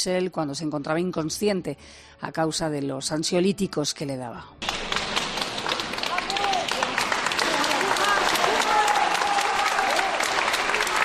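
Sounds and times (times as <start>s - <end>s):
speech: 0.0s - 4.8s
crowd applauding outside a courthouse: 4.6s - 11.0s.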